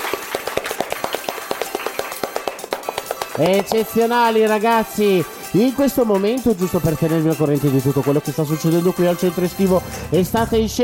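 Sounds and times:
hand claps from a small group: 0:00.0 - 0:04.9
speech: 0:03.4 - 0:10.8.

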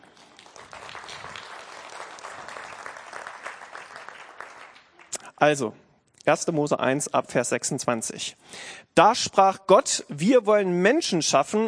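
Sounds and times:
applause: 0:00.0 - 0:05.2
speech: 0:05.4 - 0:11.6.

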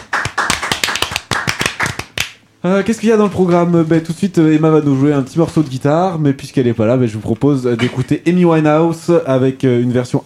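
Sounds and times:
a few people clapping briskly: 0:00.0 - 0:02.4
speech: 0:02.6 - 0:10.2.

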